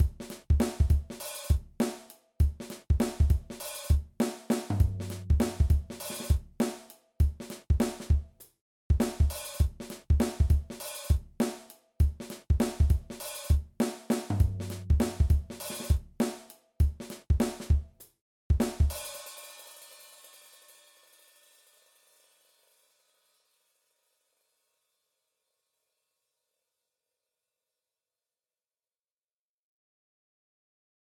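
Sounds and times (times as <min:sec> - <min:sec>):
groove pattern: 0:00.0 - 0:20.4.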